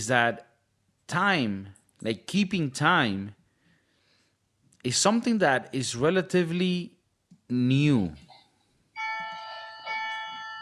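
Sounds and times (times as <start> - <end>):
speech: 0.0 - 0.5, 1.1 - 3.4, 4.8 - 8.2
cuckoo clock chiming: 9.0 - 10.5.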